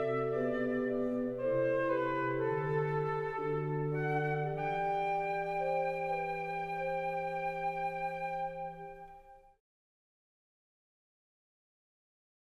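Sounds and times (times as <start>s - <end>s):
transverse flute playing largo funeral music: 0.0s - 9.6s.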